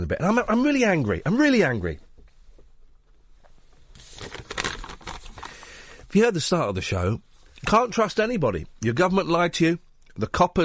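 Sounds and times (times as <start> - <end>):
speech: 0.0 - 2.1, 6.1 - 10.6
cough sweet wrapper crinkling: 4.0 - 5.6.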